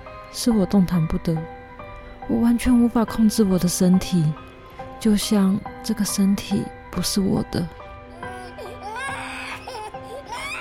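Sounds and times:
speech: 0.3s - 1.6s, 2.3s - 4.4s, 5.0s - 7.8s
baby crying: 8.1s - 10.5s.

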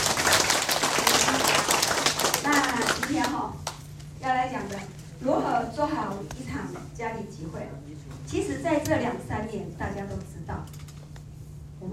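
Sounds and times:
audience applause: 0.0s - 3.4s
speech: 4.2s - 10.9s.

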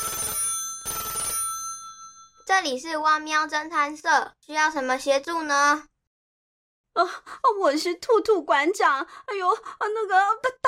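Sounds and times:
telephone ringing: 0.0s - 2.5s
speech: 2.5s - 5.9s, 7.0s - 10.6s.

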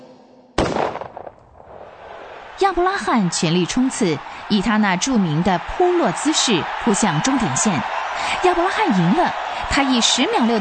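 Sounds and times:
starting pistol shot: 0.6s - 2.0s
speech: 2.6s - 10.5s.

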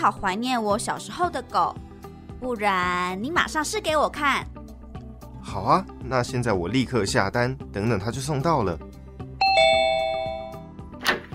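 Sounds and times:
speech: 0.0s - 4.6s, 5.4s - 8.9s
two-tone doorbell ding-dong chime: 9.4s - 10.7s.

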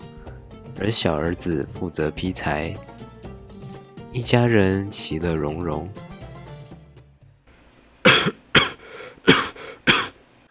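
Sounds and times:
speech: 0.8s - 2.9s, 4.1s - 6.1s
coughing fit: 8.0s - 10.2s.

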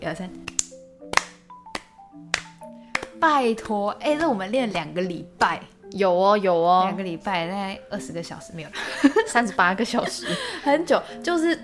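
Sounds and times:
speech: 0.0s - 0.6s, 3.2s - 11.6s
hands clapping: 0.4s - 4.3s.

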